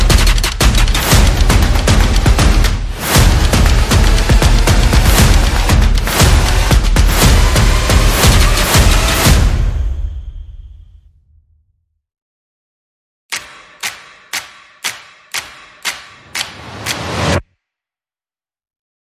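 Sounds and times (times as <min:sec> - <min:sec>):
percussion: 0:00.0 - 0:10.9, 0:13.3 - 0:17.4
sound effects: 0:00.0 - 0:11.0.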